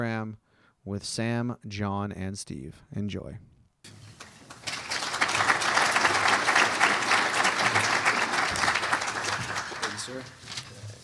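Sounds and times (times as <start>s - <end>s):
speech: 0.0s - 4.0s, 10.1s - 10.6s
audience applause: 3.9s - 10.4s.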